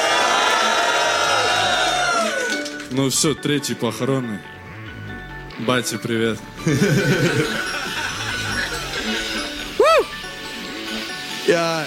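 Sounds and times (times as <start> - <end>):
whoops from the crowd: 0.0 - 2.7, 9.8 - 10.2
crowd cheering and shouting: 0.0 - 2.8, 8.7 - 10.3
speech: 2.9 - 4.6, 5.6 - 7.7, 11.5 - 11.8
laughter: 6.6 - 10.0.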